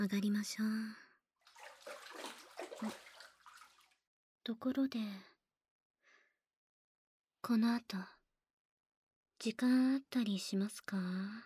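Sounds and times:
speech: 0.0 - 1.0, 2.8 - 3.0, 4.5 - 5.3, 7.4 - 8.2, 9.4 - 11.4
water sloshing and pouring as someone rinses their body in a bath: 1.5 - 4.0.

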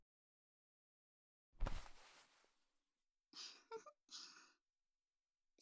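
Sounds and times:
hand massage ASMR: 1.6 - 2.4.

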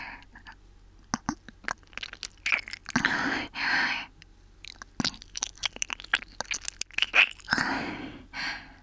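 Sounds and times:
ear licking: 1.1 - 3.3, 4.6 - 7.7
oral sex sucking sounds: 1.1 - 8.0.

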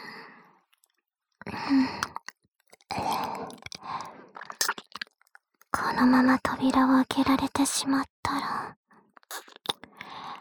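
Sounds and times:
wet smacking ear licking mouth sounds: 1.8 - 5.4, 9.2 - 10.1
speech: 6.0 - 8.8.

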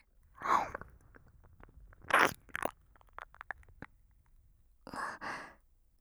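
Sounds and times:
ASMR ear licking sounds: 0.4 - 4.0.

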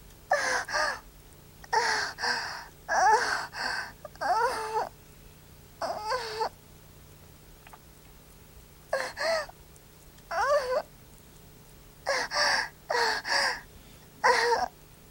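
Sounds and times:
young woman moaning: 1.7 - 4.9, 5.8 - 6.5, 8.9 - 9.5, 10.3 - 10.9, 12.1 - 13.6, 14.2 - 14.7.

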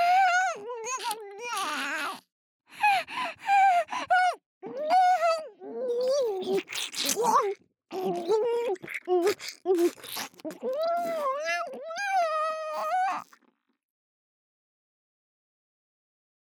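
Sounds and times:
oral sex sounds loop: 0.1 - 4.8, 5.9 - 13.4.

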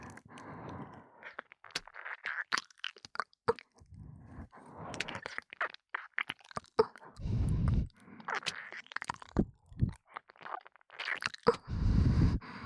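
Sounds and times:
breathy ASMR breathing in the right ear: 0.0 - 1.2, 3.9 - 5.2, 7.0 - 8.4, 11.6 - 12.6
ASMR ear licking: 0.0 - 12.4.

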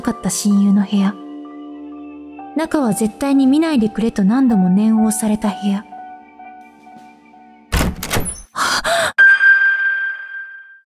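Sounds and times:
speech: 0.1 - 1.2, 2.6 - 5.9
room door opening with wooden thunks: 7.7 - 8.6
metallic ringing tone: 9.2 - 10.9.

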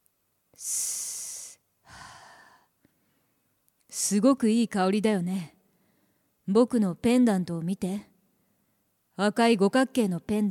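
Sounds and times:
deep breath: 1.8 - 3.4, 5.7 - 6.4
speech: 4.1 - 5.6, 6.5 - 8.1, 9.2 - 10.4.

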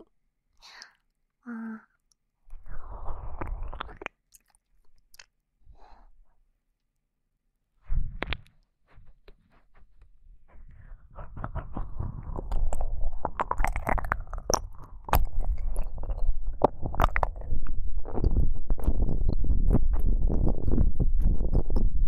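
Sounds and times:
ASMR ear-eating wet chewing mouth sounds: 2.8 - 5.4, 11.2 - 21.9.

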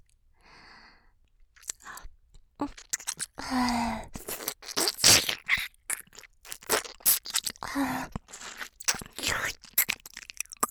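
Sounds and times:
licking sounds in the right ear: 2.6 - 3.4, 4.1 - 10.6.

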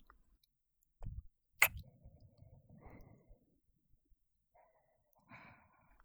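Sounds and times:
ASMR kissing sounds: 1.1 - 1.8.

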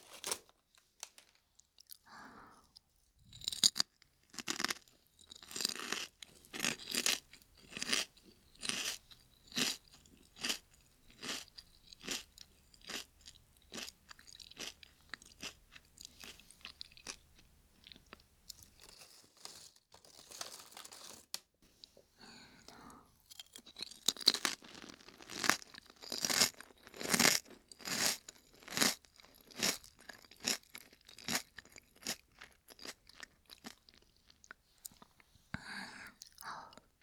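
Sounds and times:
lightly salted potato chips being chewed: 3.4 - 17.2, 17.8 - 21.4, 23.3 - 35.0.

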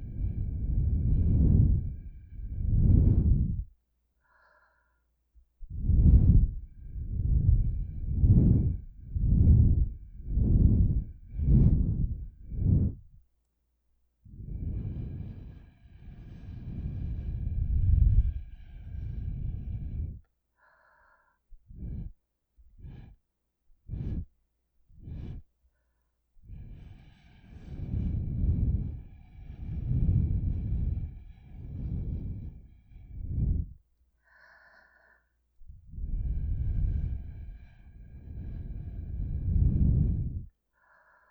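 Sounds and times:
blowing into ears through a straw: 0.0 - 3.7, 5.7 - 13.1, 14.3 - 20.2, 23.9 - 24.3, 26.5 - 33.8, 35.9 - 40.5.

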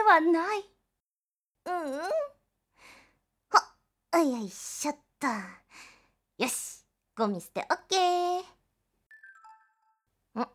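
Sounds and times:
speech: 0.1 - 0.7, 1.6 - 2.3, 4.1 - 8.6, 10.4 - 10.5
mobile phone message notification chime: 9.1 - 10.0.

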